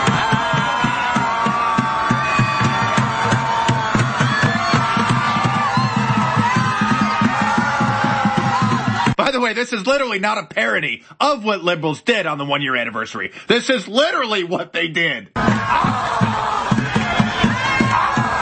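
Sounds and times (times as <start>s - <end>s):
large crowd yelling and screaming: 0.0s - 9.2s, 15.4s - 18.4s
speech: 9.5s - 16.9s.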